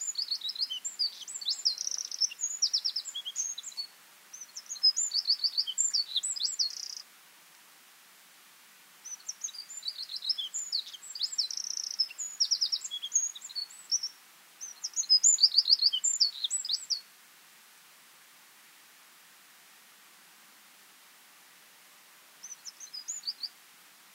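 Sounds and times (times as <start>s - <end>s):
Eurasian wren Troglodytes troglodytes song: 0.0s - 7.1s, 9.0s - 17.2s, 22.4s - 23.6s.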